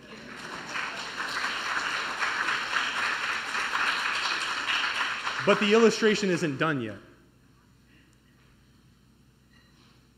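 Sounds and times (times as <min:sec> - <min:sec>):
audience applause: 0:00.0 - 0:06.4
speech: 0:05.5 - 0:07.1.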